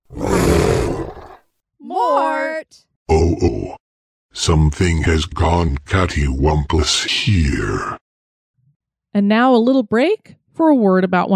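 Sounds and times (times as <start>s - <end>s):
big cat roaring: 0.1s - 1.4s, 3.1s - 3.8s
speech: 2.7s - 3.8s, 4.4s - 8.0s, 9.2s - 11.3s.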